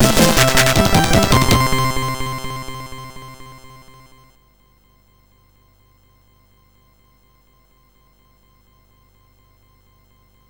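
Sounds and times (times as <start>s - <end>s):
MOS6581R4 SID chip music: 0.0s - 4.2s.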